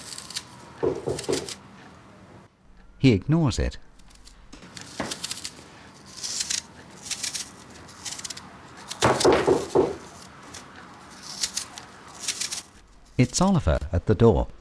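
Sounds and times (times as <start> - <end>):
penknife peeling an apple: 0.0 - 1.6, 3.9 - 13.4
speech: 0.8 - 1.7, 3.0 - 3.9, 13.3 - 14.5.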